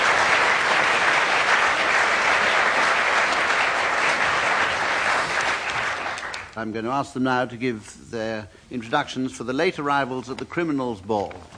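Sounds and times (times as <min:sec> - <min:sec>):
audience applause: 0:00.0 - 0:06.6
speech: 0:06.6 - 0:11.5.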